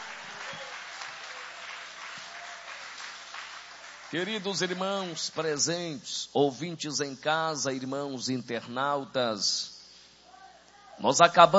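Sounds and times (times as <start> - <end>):
audience clapping: 0.0 - 5.2
speech: 4.1 - 9.7, 11.0 - 11.5.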